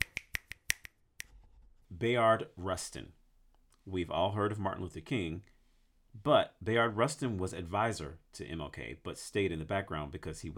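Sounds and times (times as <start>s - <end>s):
audience finger snapping: 0.0s - 1.3s
speech: 2.0s - 3.2s, 3.9s - 10.5s.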